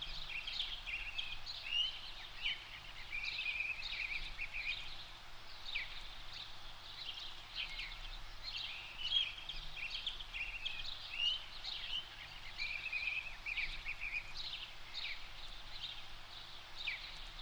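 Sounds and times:
bird song: 0.0s - 17.3s.

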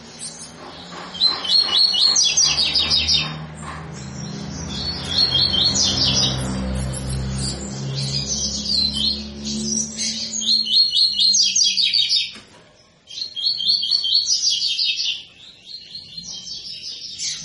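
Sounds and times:
double-collared seedeater song of quick high notes: 0.0s - 17.4s.

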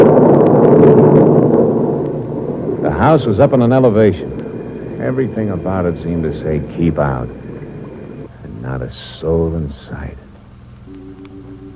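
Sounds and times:
thunder in an electric storm: 0.0s - 5.2s
speech: 3.0s - 4.4s, 5.0s - 7.4s, 8.7s - 10.2s.

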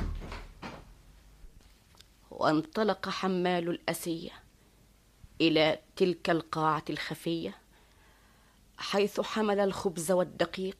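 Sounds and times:
door swinging shut: 0.0s - 1.0s
speech: 2.4s - 4.4s, 5.4s - 7.6s, 8.8s - 10.7s.

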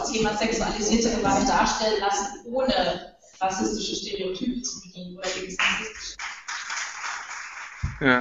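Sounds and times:
speech: 0.2s - 6.3s, 8.0s - 8.1s
crowd applauding: 5.6s - 8.1s.

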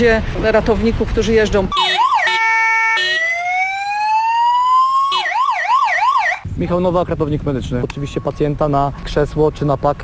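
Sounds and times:
speech: 0.0s - 2.0s, 6.6s - 10.0s
motorcycle ambulance siren: 1.7s - 6.4s.

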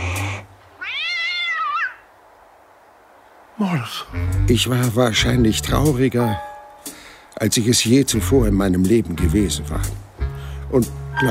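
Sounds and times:
tomcat meowing as a fox catches it: 0.0s - 2.1s
speech: 3.6s - 6.5s, 7.4s - 10.1s, 10.7s - 11.2s.

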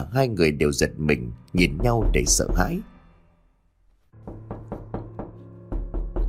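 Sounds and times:
speech: 0.0s - 2.9s
knocking on a door: 1.6s - 2.9s, 4.2s - 6.2s.

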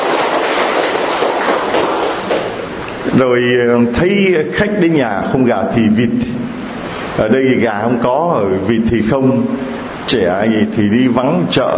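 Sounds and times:
loud round of applause: 0.0s - 2.7s
speech: 3.2s - 6.3s, 7.2s - 11.7s.

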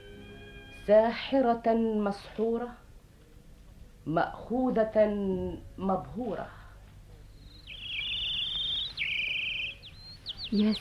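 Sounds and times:
speech: 0.8s - 2.8s, 4.0s - 6.6s, 10.5s - 10.7s
birds singing: 7.2s - 10.7s.

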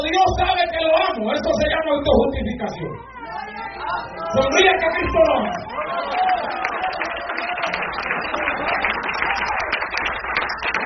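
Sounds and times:
speech: 0.1s - 3.4s, 3.9s - 6.3s
weak audience applause: 4.5s - 10.8s.

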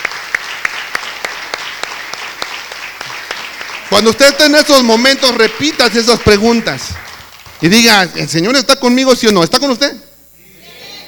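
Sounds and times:
congregation applause at a church sermon: 0.0s - 7.8s
speech: 3.9s - 7.0s, 7.6s - 10.0s.

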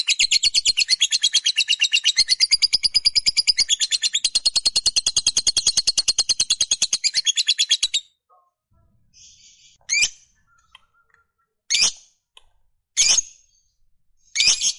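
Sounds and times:
fighter-type lovebird chirping and giving long rapid high chatter: 0.0s - 8.0s, 9.2s - 12.0s.

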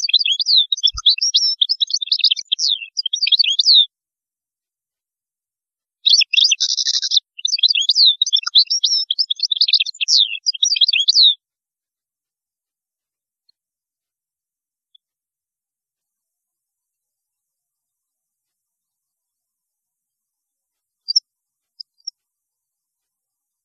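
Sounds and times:
European goldfinch song: 0.0s - 3.9s, 6.0s - 11.4s.

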